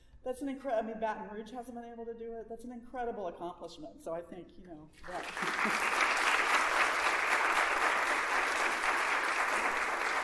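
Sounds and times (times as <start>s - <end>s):
speech: 0.2s - 6.0s
audience applause: 5.0s - 10.2s.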